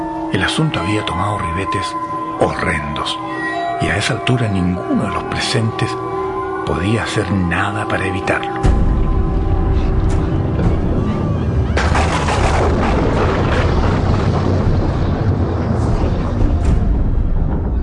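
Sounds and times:
speech: 0.3s - 8.8s
thunder rumbling: 8.7s - 17.8s.

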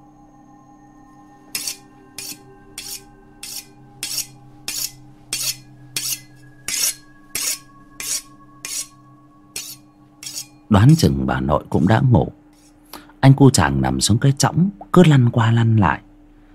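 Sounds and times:
sharp knife blade drawn across a whetstone: 1.5s - 10.6s, 12.6s - 12.8s
speech: 10.7s - 12.4s, 13.3s - 16.1s.

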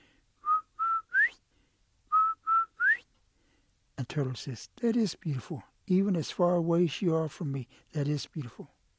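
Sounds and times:
whistle blowing: 0.4s - 1.4s, 2.1s - 3.0s
speech: 4.1s - 8.8s.

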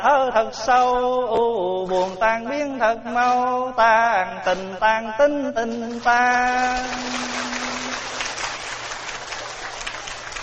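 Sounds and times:
speech: 0.0s - 7.4s
audience clapping at a Buddhist dharma talk: 6.0s - 10.4s.

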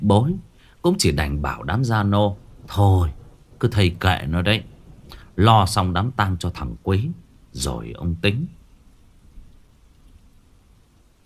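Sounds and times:
speech: 0.0s - 4.7s, 5.4s - 8.6s
rain: 0.0s - 11.2s
distant thunder: 0.2s - 11.2s.

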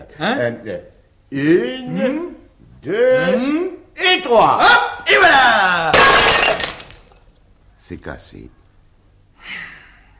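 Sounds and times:
speech: 0.1s - 6.0s, 7.9s - 8.6s
porcelain vase shattering: 5.9s - 7.4s.

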